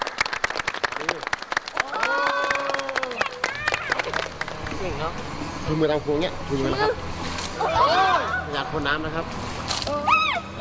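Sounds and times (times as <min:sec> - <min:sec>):
children clapping hands: 0:00.0 - 0:04.7
speech: 0:05.0 - 0:10.2.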